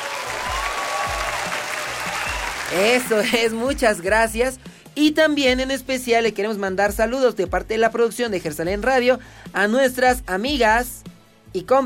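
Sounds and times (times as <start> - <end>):
applause: 0.0 - 3.6
speech: 2.7 - 11.8.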